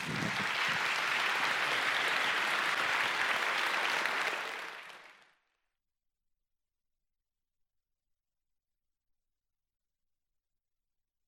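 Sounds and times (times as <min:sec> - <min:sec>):
audience applause welcoming a speaker: 0:00.0 - 0:05.4.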